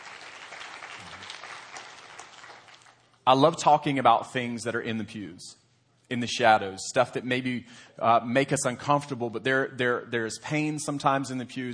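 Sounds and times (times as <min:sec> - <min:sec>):
audience applause: 0:00.0 - 0:03.1
speech: 0:03.2 - 0:11.7.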